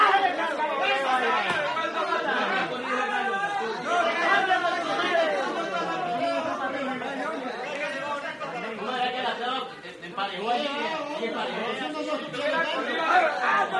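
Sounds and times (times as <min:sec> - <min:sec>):
male crowd walla at a cockfight: 0:00.0 - 0:13.7.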